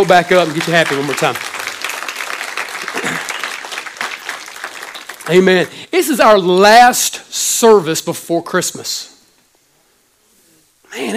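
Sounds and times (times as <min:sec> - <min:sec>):
speech: 0:00.0 - 0:01.5, 0:05.3 - 0:09.1
crowd clapping: 0:00.0 - 0:05.8.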